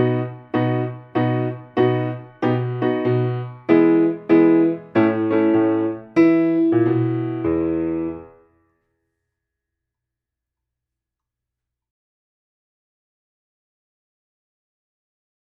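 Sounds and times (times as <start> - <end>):
blues swing music: 0.0 - 8.1.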